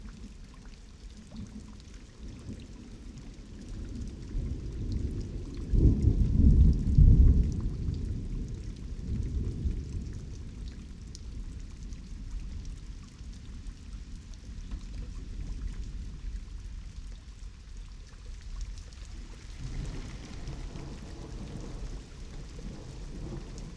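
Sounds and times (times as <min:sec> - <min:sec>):
thunder: 0:04.4 - 0:10.4, 0:19.4 - 0:23.7.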